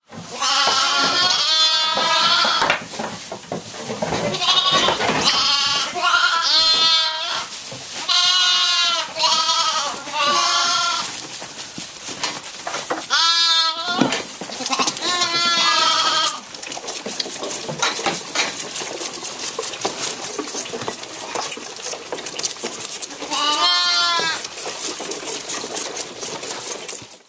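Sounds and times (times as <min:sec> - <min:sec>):
rustling: 0:00.1 - 0:27.2
sheep lambs bleating: 0:00.3 - 0:02.8, 0:04.3 - 0:11.2, 0:13.0 - 0:16.5, 0:23.2 - 0:24.6
lambs sucking and slurping: 0:14.6 - 0:27.2.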